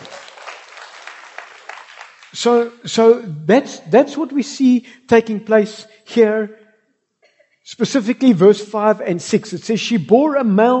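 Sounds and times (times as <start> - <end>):
church gathering applauding during a sermon: 0.0 - 2.8
speech: 2.3 - 6.6, 7.7 - 10.7.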